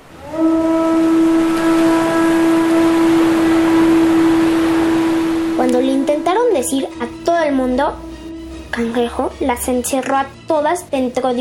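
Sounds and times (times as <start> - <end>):
conch shell being blown: 0.0 - 7.2
speech: 8.8 - 11.3.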